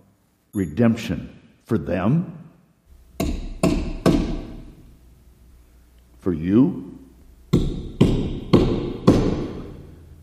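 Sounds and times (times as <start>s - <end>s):
speech: 0.5s - 2.4s, 6.2s - 7.0s
hammer blows driving nails: 3.2s - 4.7s, 7.5s - 9.7s.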